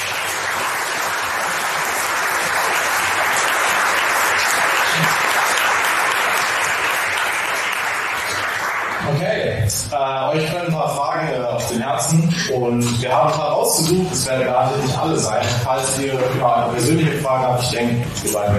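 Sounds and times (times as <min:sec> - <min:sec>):
audience applause: 0:00.0 - 0:09.3
speech: 0:10.3 - 0:18.5.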